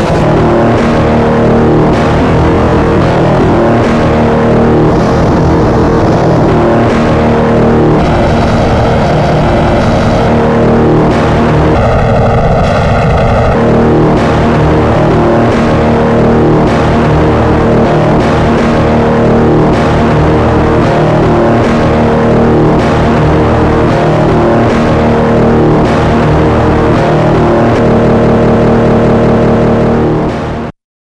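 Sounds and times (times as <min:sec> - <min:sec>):
circuit bent guitar: 0:00.0 - 0:30.7.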